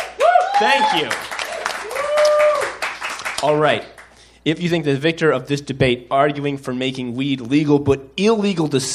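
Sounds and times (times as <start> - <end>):
audience applause: 0.0 - 3.7
speech: 0.6 - 1.3, 3.4 - 8.9.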